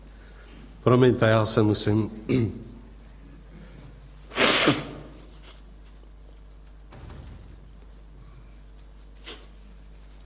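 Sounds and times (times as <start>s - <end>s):
speech: 0.8s - 2.7s
nose blowing: 4.3s - 5.3s.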